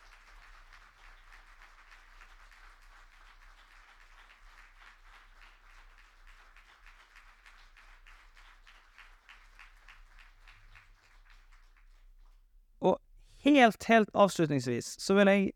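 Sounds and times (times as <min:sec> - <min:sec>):
audience applause: 0:00.0 - 0:12.1
speech: 0:12.8 - 0:15.5.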